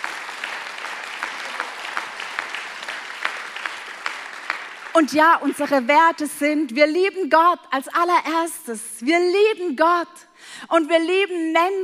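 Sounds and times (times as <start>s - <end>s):
audience applause: 0.0s - 5.6s
speech: 5.0s - 11.8s.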